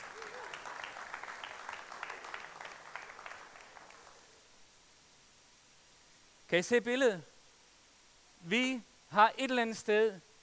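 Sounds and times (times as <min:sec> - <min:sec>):
audience applause: 0:00.0 - 0:04.3
speech: 0:06.5 - 0:07.3, 0:08.4 - 0:10.3.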